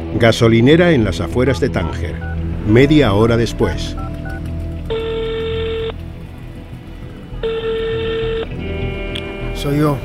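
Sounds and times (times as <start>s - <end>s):
speech: 0.2s - 4.1s, 9.6s - 10.0s
mobile phone ringing in a minibus: 4.0s - 6.0s, 7.4s - 8.6s.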